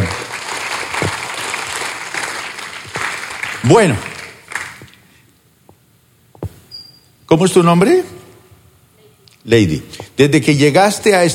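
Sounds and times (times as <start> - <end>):
audience applause: 0.0 - 4.9
speech: 3.6 - 4.1, 7.3 - 8.2, 9.5 - 11.3.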